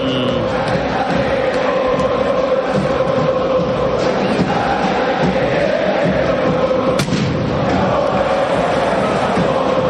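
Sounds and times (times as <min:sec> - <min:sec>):
huge stadium crowd cheering and chanting: 0:00.0 - 0:09.8.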